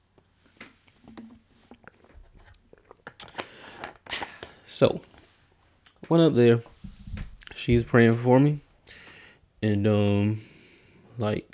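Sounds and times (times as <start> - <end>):
person drinking water: 0.7 - 3.6
speech: 4.8 - 5.1, 6.1 - 6.7, 7.6 - 8.6, 9.6 - 10.5, 11.2 - 11.5.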